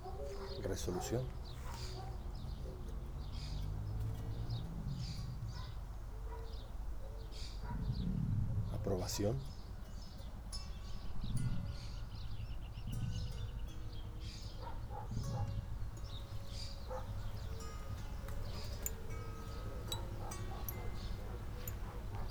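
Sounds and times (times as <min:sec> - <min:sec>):
pigeons cooing: 0:00.0 - 0:08.1, 0:14.2 - 0:22.2
steady hum: 0:00.0 - 0:22.2
light clinks: 0:00.1 - 0:07.5, 0:09.8 - 0:22.2
speech: 0:00.6 - 0:01.6, 0:09.0 - 0:09.5.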